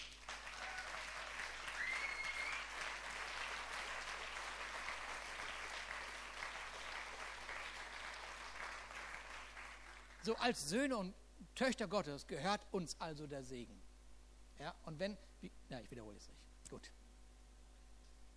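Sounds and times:
audience applause: 0.0 - 10.2
faint whoops or cheers: 0.4 - 2.7
speech: 10.2 - 13.8, 14.6 - 17.0.

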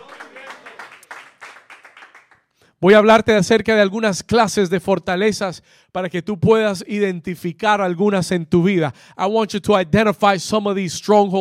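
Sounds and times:
crowd clapping loudly: 0.0 - 2.6
speech: 2.8 - 11.3.

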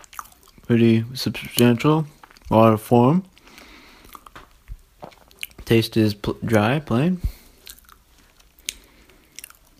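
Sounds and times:
biting and chewing a regular powdered donut: 0.0 - 0.7, 3.3 - 5.7, 7.3 - 9.7
speech: 0.7 - 3.3, 5.7 - 7.4.

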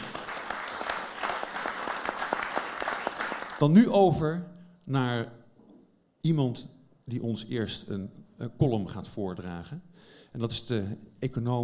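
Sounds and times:
audience applause: 0.0 - 3.6
speech: 3.6 - 5.4, 6.2 - 11.6.

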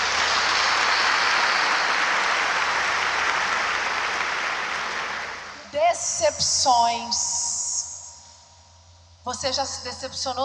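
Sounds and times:
audience applause: 0.0 - 5.6
speech: 6.0 - 7.3, 9.2 - 10.4.

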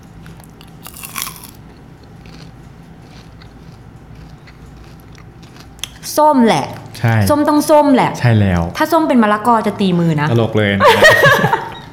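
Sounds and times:
colour-coated fruit-flavoured popcorn crunch: 0.4 - 5.7
chewing colour-coated fruit-flavoured popcorn: 0.6 - 5.9
speech: 6.1 - 11.6
laughter: 10.8 - 11.9.

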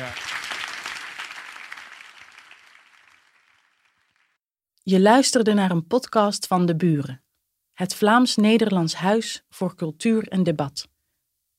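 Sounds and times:
audience applause: 0.0 - 4.4
speech: 4.9 - 7.2, 7.8 - 10.9.

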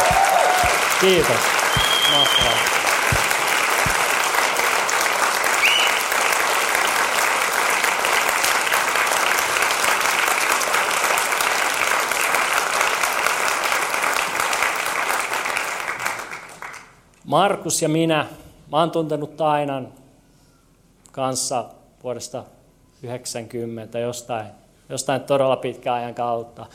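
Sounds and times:
large crowd applause: 0.0 - 16.9
speech: 1.0 - 2.9, 17.3 - 20.0, 21.2 - 26.7.

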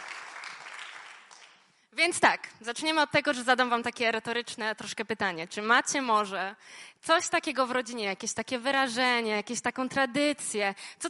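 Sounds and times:
crowd applause: 0.0 - 1.6
speech: 2.0 - 11.0.

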